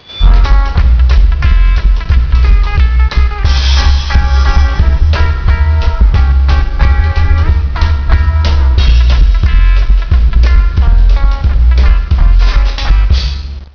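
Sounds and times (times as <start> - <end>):
closing music: 0.0 - 13.7.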